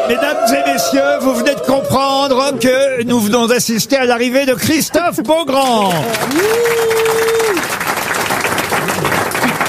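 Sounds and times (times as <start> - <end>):
speech: 0.1 - 7.6
audience applauding: 5.5 - 9.6.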